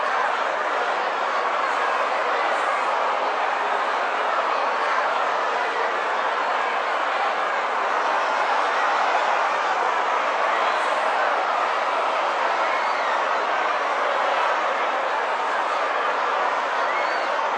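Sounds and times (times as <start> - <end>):
large violent and angry mob shouting and protesting in a riot: 0.0 - 17.5.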